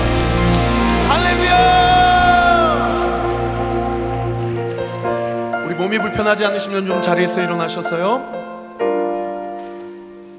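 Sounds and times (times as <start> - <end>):
audience applauding: 0.0 - 7.4
speech: 6.1 - 8.4.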